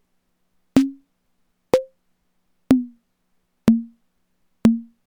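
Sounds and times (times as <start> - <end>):
snare drum: 0.8 - 1.0, 2.7 - 3.0, 3.7 - 3.9, 4.7 - 4.9.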